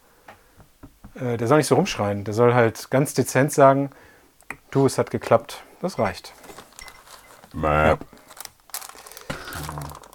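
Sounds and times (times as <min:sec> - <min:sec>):
speech: 0:01.2 - 0:04.1, 0:04.7 - 0:06.4, 0:07.6 - 0:08.2
packaging being crumpled while repacking item: 0:06.2 - 0:10.1.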